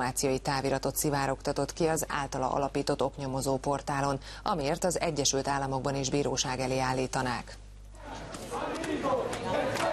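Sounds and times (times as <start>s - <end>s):
speech: 0.0s - 9.4s
murmur of WikiLeaks supporters outside Ecuador's embassy in London: 8.0s - 9.9s
people shouting: 8.0s - 9.9s.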